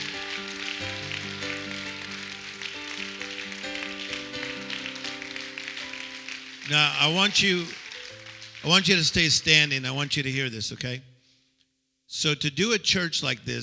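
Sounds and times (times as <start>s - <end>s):
audience clapping: 0.0s - 10.7s
speech: 6.7s - 7.8s, 8.6s - 11.1s, 12.1s - 13.6s.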